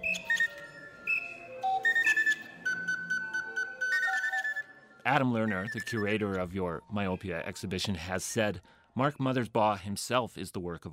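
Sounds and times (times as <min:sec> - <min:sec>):
keyboard-controlled machine playing bird calls: 0:00.0 - 0:04.6, 0:05.3 - 0:07.7
speech: 0:05.0 - 0:10.9.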